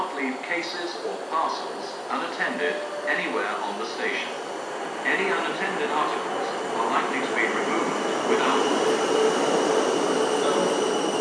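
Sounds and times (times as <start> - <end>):
South Western train service to London Waterloo pulling into platform 10: 0.0 - 11.2
speech: 0.5 - 9.9.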